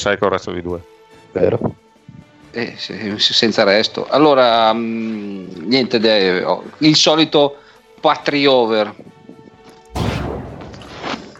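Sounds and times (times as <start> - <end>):
speech: 0.0 - 1.8, 2.5 - 9.1
pistol gunshot: 9.9 - 11.3.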